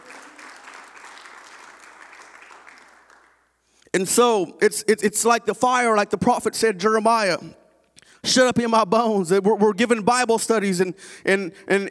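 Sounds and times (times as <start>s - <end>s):
audience hand clapping: 0.0s - 3.7s
speech: 4.0s - 7.6s, 8.2s - 11.8s.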